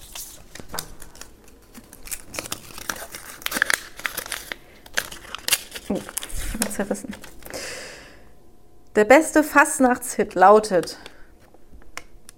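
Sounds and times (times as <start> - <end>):
paper slip being unfolded: 0.0 - 7.5
speech: 6.8 - 7.2, 9.0 - 11.1.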